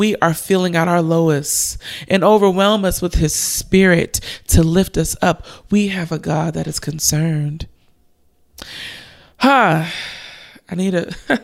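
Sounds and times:
speech: 0.0s - 7.7s, 8.6s - 11.4s
speaker inhaling and sighing: 8.6s - 10.6s.

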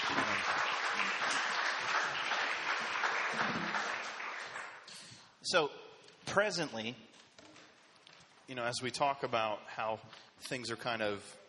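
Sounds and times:
crowd clapping: 0.0s - 5.2s
speech: 5.5s - 7.1s, 8.5s - 11.4s.

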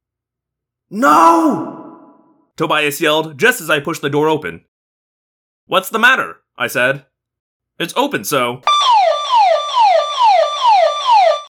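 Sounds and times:
speech: 0.9s - 1.8s, 2.6s - 4.7s, 5.7s - 7.1s, 7.8s - 9.6s
burglar alarm blaring: 8.7s - 11.5s.

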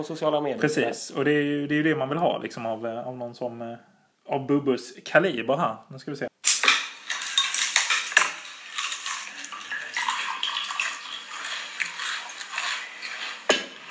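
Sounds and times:
speech: 0.0s - 6.3s
beer being poured into a glass: 6.9s - 13.9s.

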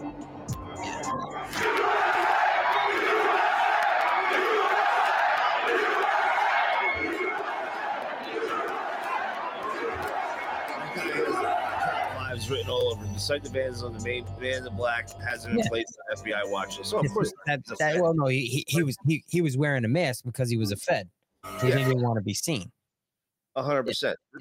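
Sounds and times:
loud crowd roaring and shouting: 0.4s - 13.0s
laughter: 8.3s - 12.9s, 15.4s - 18.0s
speech: 13.2s - 22.8s, 23.6s - 24.3s.

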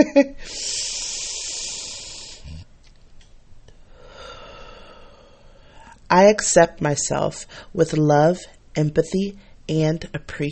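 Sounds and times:
speech: 0.0s - 1.0s, 6.1s - 10.5s
deep breath in during a guided affirmation exercise: 0.4s - 2.7s, 3.8s - 6.0s.

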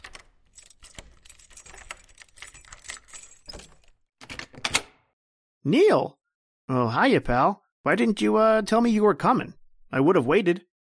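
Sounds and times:
metal keys jangling and scraping in an apartment door lock: 0.0s - 4.8s
speech: 5.6s - 10.7s.

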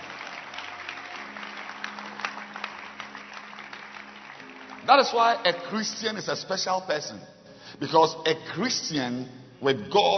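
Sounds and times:
audience clapping hands: 0.0s - 6.2s
speech: 4.9s - 10.1s.

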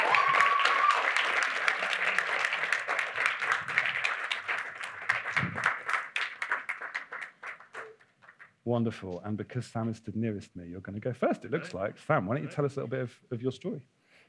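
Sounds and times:
audience applause: 0.0s - 8.5s
speech: 8.7s - 14.0s.

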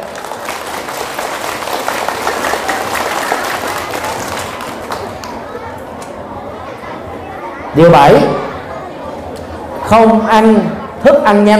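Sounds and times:
audience applause: 0.0s - 5.6s
speech: 7.8s - 8.5s, 9.9s - 11.5s.

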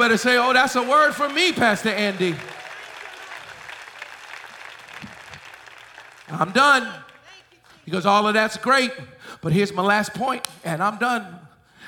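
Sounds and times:
speech: 0.0s - 2.6s, 6.3s - 7.0s, 7.9s - 11.8s
audience clapping hands: 0.0s - 7.4s.

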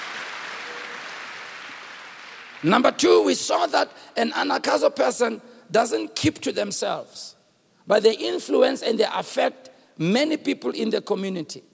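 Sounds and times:
audience clapping: 0.0s - 3.0s
speech: 2.6s - 11.7s.

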